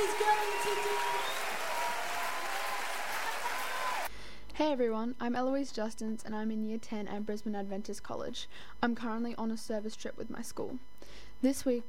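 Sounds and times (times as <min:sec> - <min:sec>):
church audience applauding: 0:00.0 - 0:04.1
speech: 0:04.6 - 0:11.8.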